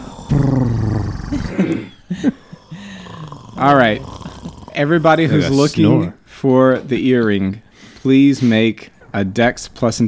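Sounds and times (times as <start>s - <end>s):
person imitating a cat purr: 0.0s - 1.8s, 2.4s - 5.8s
short vocal sounds: 0.0s - 6.1s
speech: 1.6s - 2.4s, 3.6s - 4.1s, 4.8s - 10.0s.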